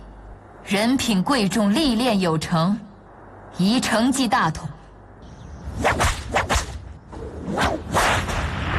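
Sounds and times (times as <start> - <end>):
speech: 0.7 - 2.9, 3.5 - 4.7
ceremonial whip cracking: 5.8 - 6.8, 7.5 - 8.6.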